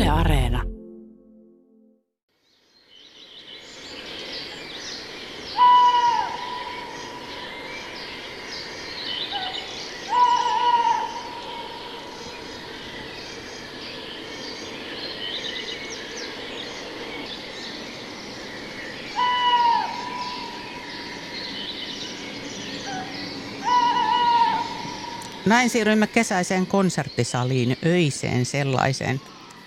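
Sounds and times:
speech: 0.1s - 0.7s, 25.5s - 29.3s
tawny owl hooting: 5.5s - 7.1s, 9.3s - 12.2s, 19.1s - 20.9s, 22.7s - 25.4s.

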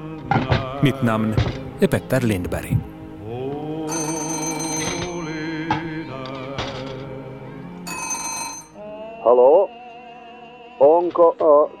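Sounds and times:
speech: 0.3s - 2.9s, 9.3s - 9.8s, 11.1s - 11.7s
tonal music: 0.8s - 6.2s
telephone bell ringing: 3.9s - 5.6s, 7.9s - 8.9s.

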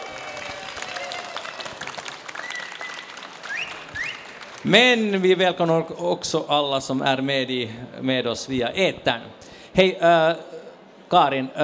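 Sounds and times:
audience applause: 0.0s - 4.7s
speech: 4.6s - 10.5s, 11.1s - 11.6s.

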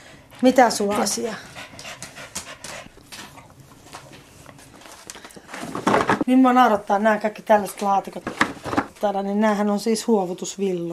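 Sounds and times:
dog panting: 0.0s - 4.7s
speech: 0.4s - 1.5s, 6.3s - 10.9s.

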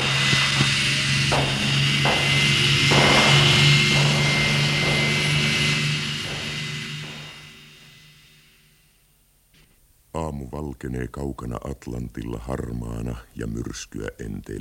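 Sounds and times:
patrol boat engine roaring at full throttle: 0.0s - 8.2s
speech: 10.6s - 14.6s.

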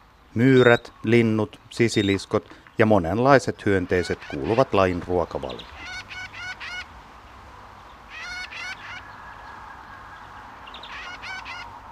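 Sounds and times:
speech: 0.3s - 5.8s
great grey shrike harsh nasal calls: 3.7s - 6.9s, 8.0s - 11.8s.

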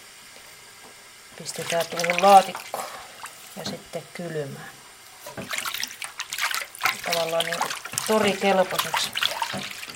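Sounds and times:
speech: 1.4s - 2.9s, 3.6s - 4.8s, 5.4s - 5.8s, 7.1s - 9.8s
water splashing as fish are rinsed: 1.4s - 3.6s, 5.2s - 9.9s.

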